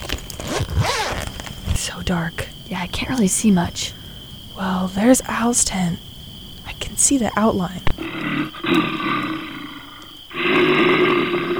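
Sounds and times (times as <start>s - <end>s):
speech: 1.8s - 4.0s, 4.6s - 6.1s, 6.8s - 9.2s
bear growling behind a tent at night: 7.9s - 11.5s.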